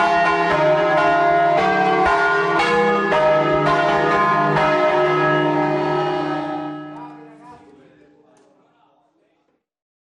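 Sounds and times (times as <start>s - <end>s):
church bells rung by bell ringers in doppio ribattuto: 0.0s - 7.8s.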